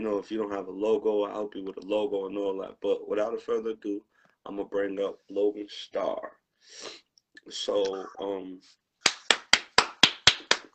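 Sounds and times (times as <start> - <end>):
speech: 0.0 - 8.8
hand claps greeting a guest on a talk show: 9.0 - 10.7.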